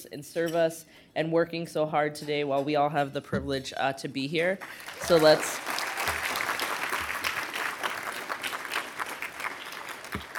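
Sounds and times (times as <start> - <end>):
speech: 0.0 - 5.8
crowd applause: 4.6 - 10.3.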